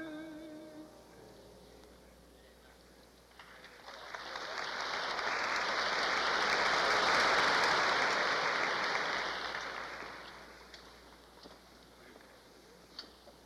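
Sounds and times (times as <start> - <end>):
audience applause: 3.3 - 10.7.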